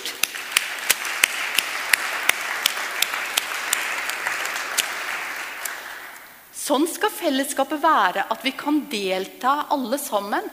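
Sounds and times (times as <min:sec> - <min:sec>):
audience applause: 0:00.0 - 0:06.3
speech: 0:06.7 - 0:10.5.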